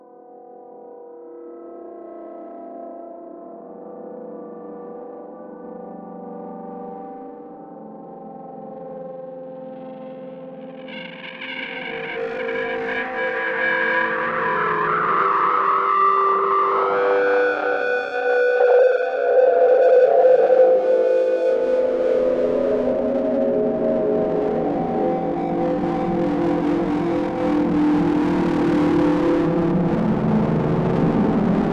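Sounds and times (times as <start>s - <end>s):
noise: 9.7s - 31.7s.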